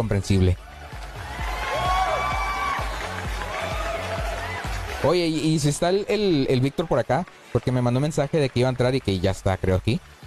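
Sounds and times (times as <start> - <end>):
speech: 0.0 - 0.6, 5.0 - 10.1
crowd applause: 0.4 - 10.2
high whoops and shouts: 0.6 - 5.2.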